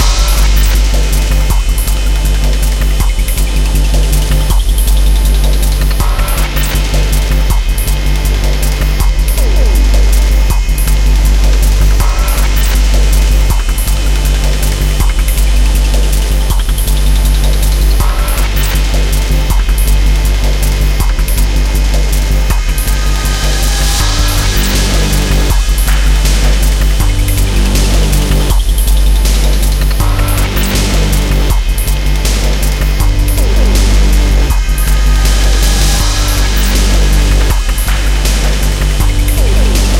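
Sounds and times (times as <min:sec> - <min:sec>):
chase music: 0:00.0 - 0:39.9.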